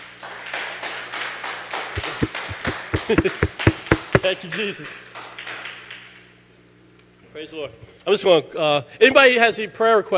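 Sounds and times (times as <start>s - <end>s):
crowd audience clapping hands: 0.2s - 6.0s
speech: 3.1s - 5.1s, 7.4s - 10.1s.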